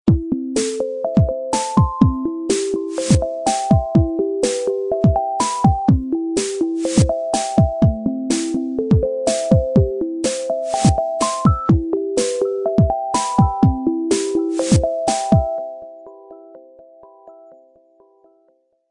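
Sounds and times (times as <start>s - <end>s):
chillout ringtone: 0.2s - 18.4s.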